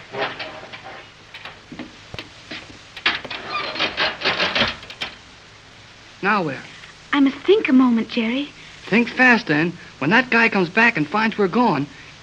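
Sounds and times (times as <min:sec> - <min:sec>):
elevator door being yanked open: 0:00.4 - 0:05.3
speech: 0:06.2 - 0:12.0.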